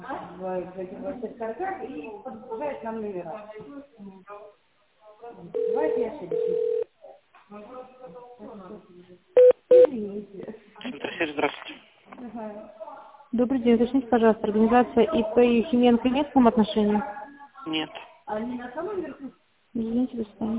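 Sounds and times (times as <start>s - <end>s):
speech: 0.4s - 4.6s, 5.2s - 6.8s, 7.5s - 11.7s, 13.4s - 20.5s
touch-tone dialing on a telephone keypad: 5.6s - 6.8s.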